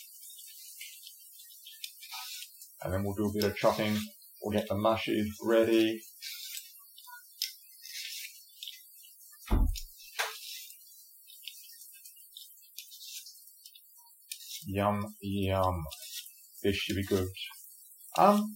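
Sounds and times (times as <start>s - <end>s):
speech: 2.8s - 6.1s, 14.8s - 16.0s, 16.6s - 17.6s, 18.2s - 18.5s
dishwasher running: 9.5s - 9.9s
dull low clunk: 9.5s - 9.9s.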